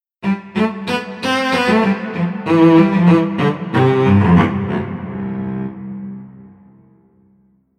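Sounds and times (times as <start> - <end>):
cello: 0.2 - 7.0.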